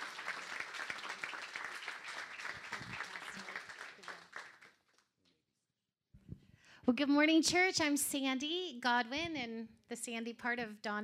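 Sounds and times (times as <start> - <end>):
church congregation applauding to welcome speakers: 0.0 - 5.0
speech: 6.9 - 11.0.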